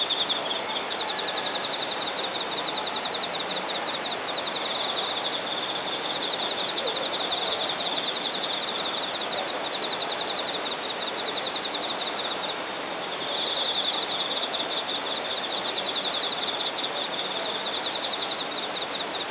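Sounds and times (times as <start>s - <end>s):
singing insects trilling in Shinagawa, Japan: 0.0s - 19.2s.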